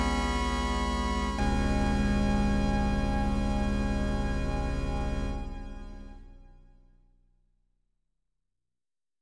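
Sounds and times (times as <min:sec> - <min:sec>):
xenharmonic music in a mystery tuning: 0:00.0 - 0:06.4.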